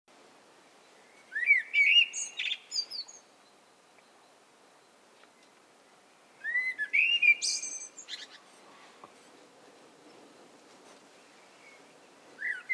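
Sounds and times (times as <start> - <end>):
common blackbird Turdus merula singing: 0.8 - 8.5, 11.1 - 12.7.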